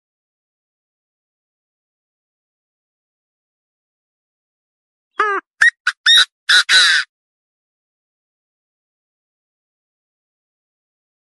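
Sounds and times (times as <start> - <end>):
partridge call: 5.2 - 7.1.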